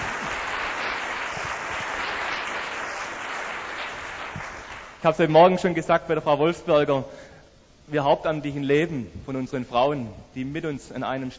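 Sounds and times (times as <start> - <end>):
audience applause: 0.0 - 5.0
speech: 5.0 - 7.3, 7.9 - 11.3.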